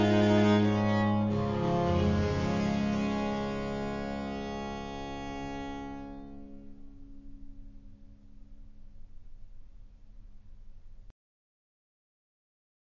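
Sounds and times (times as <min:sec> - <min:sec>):
prelude in D: 0:00.0 - 0:09.4.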